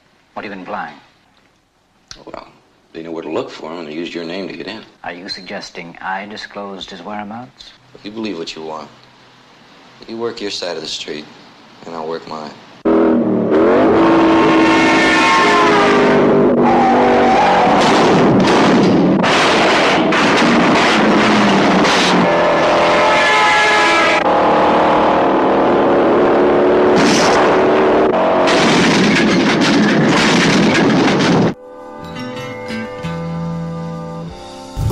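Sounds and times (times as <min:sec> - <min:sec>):
speech: 0:00.4 - 0:01.1, 0:02.2 - 0:09.1, 0:10.0 - 0:12.6
car engines revving and accelerating in film trailer: 0:12.8 - 0:31.6.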